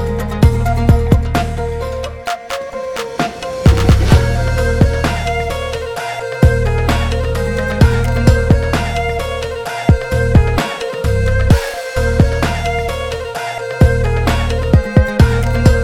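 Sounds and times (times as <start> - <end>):
trap beat: 0.2 - 15.8.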